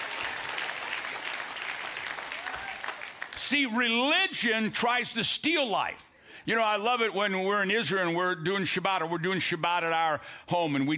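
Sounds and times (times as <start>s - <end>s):
audience clapping: 0.0s - 3.6s
speech: 3.5s - 10.9s.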